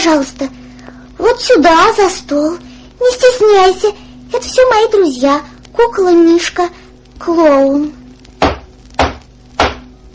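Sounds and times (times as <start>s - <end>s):
speech: 0.0s - 0.6s, 1.2s - 8.0s
knocking on a wooden door: 8.4s - 10.1s.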